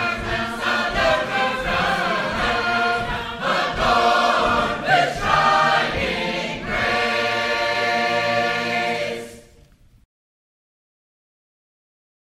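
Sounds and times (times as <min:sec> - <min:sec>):
Sacred Harp shape-note choir singing: 0:00.0 - 0:09.7.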